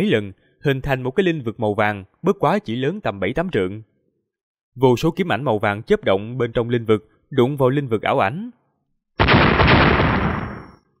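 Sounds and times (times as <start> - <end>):
speech: 0.0 - 3.9, 4.8 - 8.6
massive explosion sound effect: 9.2 - 10.8.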